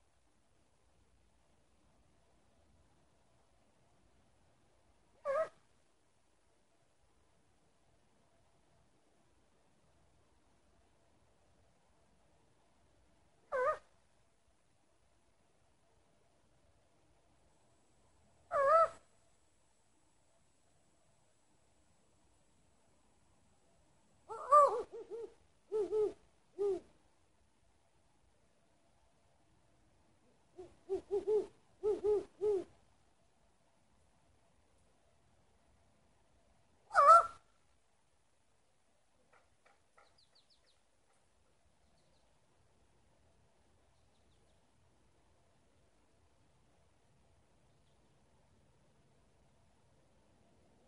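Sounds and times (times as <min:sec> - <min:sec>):
owl hooting: 0:05.2 - 0:05.6, 0:13.4 - 0:13.9, 0:18.5 - 0:19.1, 0:24.3 - 0:27.0, 0:30.6 - 0:32.8, 0:36.9 - 0:37.5.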